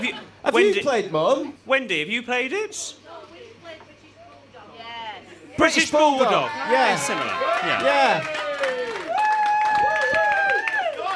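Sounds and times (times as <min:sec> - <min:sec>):
speech: 0:00.0 - 0:03.0, 0:05.6 - 0:08.8
scattered hand claps: 0:07.6 - 0:11.1.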